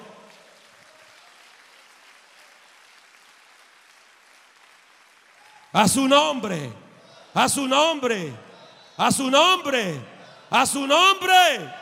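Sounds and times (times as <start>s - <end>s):
audience applause: 0.0s - 6.0s
speech: 5.7s - 6.8s, 7.4s - 8.4s, 9.0s - 11.7s.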